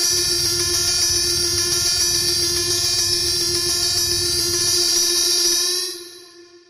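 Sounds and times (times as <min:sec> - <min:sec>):
machine alarms: 0:00.1 - 0:05.9.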